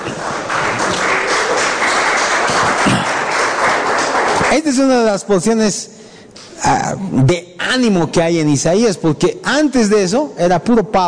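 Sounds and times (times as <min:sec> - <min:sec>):
audience applauding: 0:00.0 - 0:05.0
speech: 0:04.5 - 0:06.0, 0:06.7 - 0:11.0.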